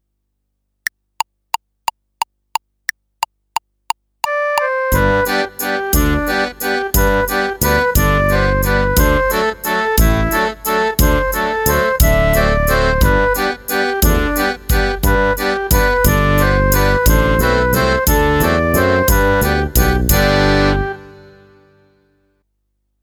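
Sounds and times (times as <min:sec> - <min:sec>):
slow fife tune: 0:04.2 - 0:21.9.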